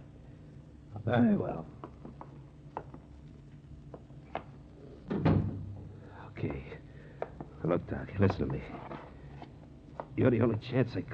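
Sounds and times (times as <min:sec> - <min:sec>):
speech: 0:01.0 - 0:01.8, 0:07.7 - 0:09.0, 0:10.2 - 0:11.1
door being closed: 0:05.1 - 0:05.8.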